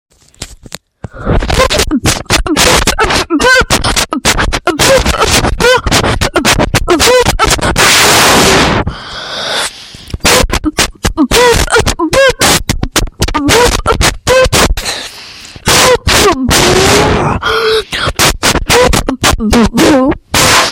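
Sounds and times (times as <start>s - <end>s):
loud beatboxing: 1.1s - 8.8s, 10.1s - 20.6s.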